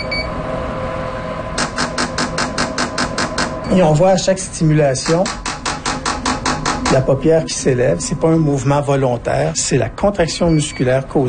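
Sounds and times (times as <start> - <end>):
beeps announcing a new stimulation: 0.0 - 0.3
constant hum: 0.0 - 11.2
speech: 3.7 - 5.5, 6.9 - 11.2.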